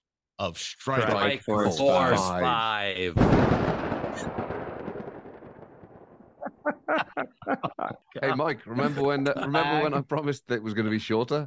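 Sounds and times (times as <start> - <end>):
speech: 0.4 - 4.5, 6.9 - 11.4
thunder sound effect: 3.2 - 6.4
laughter: 6.4 - 10.1.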